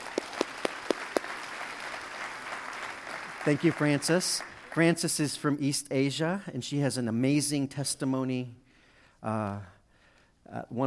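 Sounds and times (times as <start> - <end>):
church congregation clapping to welcome a guest: 0.0 - 5.4
speech: 3.4 - 8.6, 9.2 - 9.7, 10.5 - 10.8.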